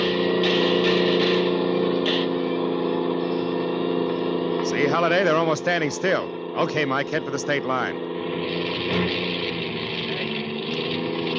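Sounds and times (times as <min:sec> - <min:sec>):
car engine sputtering roughly: 0:00.0 - 0:11.3
speech: 0:04.9 - 0:09.1.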